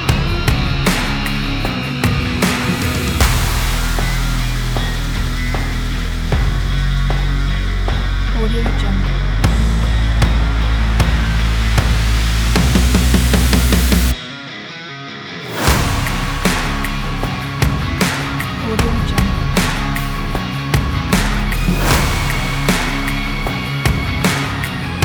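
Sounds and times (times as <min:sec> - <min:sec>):
powerful southern rock trailer music: 0:00.0 - 0:25.0.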